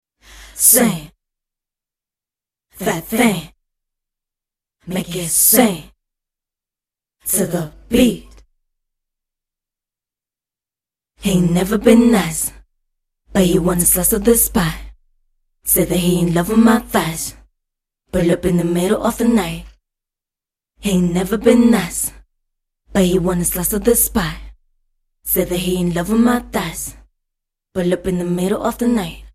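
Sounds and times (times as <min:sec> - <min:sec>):
female a cappella sung vocals in E minor: 0:00.3 - 0:01.2, 0:02.8 - 0:03.6, 0:04.8 - 0:06.0, 0:07.3 - 0:08.4, 0:11.2 - 0:12.6, 0:13.3 - 0:15.0, 0:15.7 - 0:17.5, 0:18.1 - 0:19.8, 0:20.8 - 0:22.2, 0:22.9 - 0:24.6, 0:25.3 - 0:27.1, 0:27.8 - 0:29.3.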